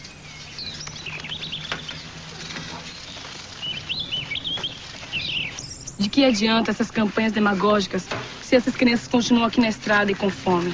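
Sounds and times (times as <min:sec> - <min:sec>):
small bird chirping as it is released: 0:00.0 - 0:06.6
soft fluttering rustles: 0:00.0 - 0:10.7
speech: 0:06.0 - 0:10.7.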